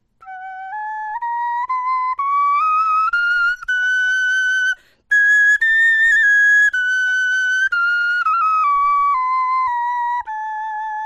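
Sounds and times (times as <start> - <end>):
bone flutes playing a scale: 0.2 - 11.0.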